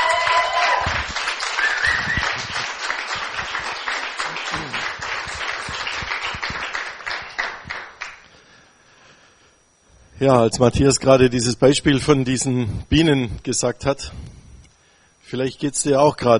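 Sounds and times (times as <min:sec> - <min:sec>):
audience applause: 0:00.0 - 0:08.2
speech: 0:10.2 - 0:14.3, 0:15.3 - 0:16.3.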